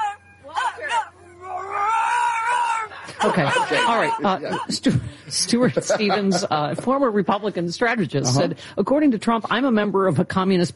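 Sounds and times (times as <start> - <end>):
growl: 0.8 - 4.1
laughter: 2.8 - 6.9
speech: 3.2 - 10.7.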